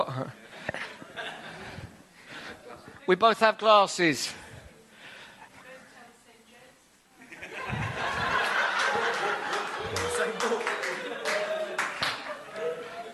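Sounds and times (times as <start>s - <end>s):
speech: 0.2s - 0.4s, 3.1s - 4.4s
laughter: 0.3s - 1.9s, 7.2s - 13.1s
clapping: 8.8s - 12.7s.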